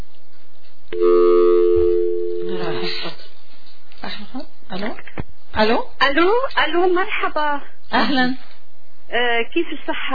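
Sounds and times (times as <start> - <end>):
incoming call tone on a telephone line: 0.9 - 3.1
speech: 4.3 - 8.5, 9.1 - 10.1.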